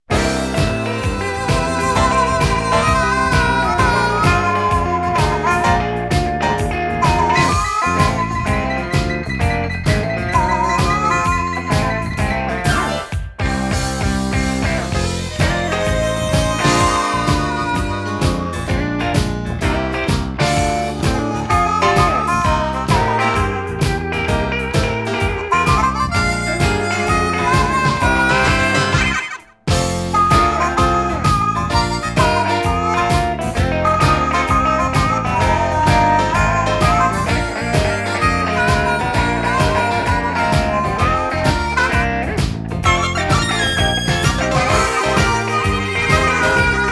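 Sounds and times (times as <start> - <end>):
blues music: 0.0 - 46.9.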